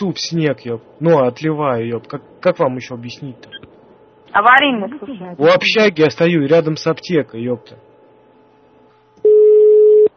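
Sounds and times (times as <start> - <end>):
speech: 0.0 - 3.6, 4.3 - 7.9
telephone busy tone after a call to an emergency line cuts off: 9.2 - 10.1.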